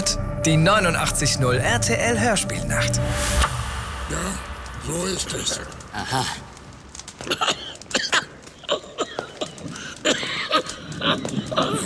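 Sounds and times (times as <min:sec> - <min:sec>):
speech: 0:00.1 - 0:03.5, 0:04.1 - 0:06.5, 0:07.2 - 0:07.6
coughing: 0:07.2 - 0:11.8.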